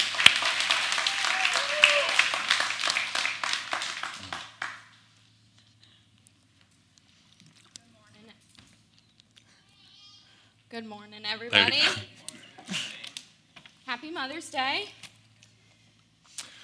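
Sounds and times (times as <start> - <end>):
audience applause: 0.0 - 4.9
faint low hum: 0.0 - 16.6
speech: 10.8 - 12.1, 14.0 - 15.0.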